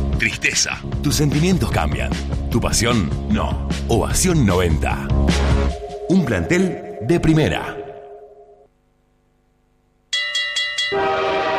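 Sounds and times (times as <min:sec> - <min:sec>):
speech: 0:00.2 - 0:07.8
train horn: 0:10.9 - 0:11.5.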